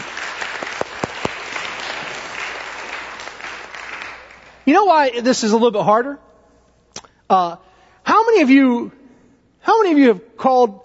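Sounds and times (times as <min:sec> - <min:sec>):
audience applause: 0:00.0 - 0:04.6
speech: 0:04.7 - 0:06.2, 0:07.3 - 0:07.6, 0:08.2 - 0:09.0, 0:09.6 - 0:10.8.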